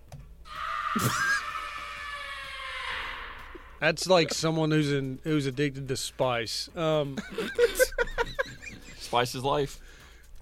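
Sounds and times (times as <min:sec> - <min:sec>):
played recording of a scream: 0:00.4 - 0:03.8
speech: 0:01.0 - 0:01.4, 0:03.8 - 0:07.8, 0:09.1 - 0:09.9
laughter: 0:07.2 - 0:09.2.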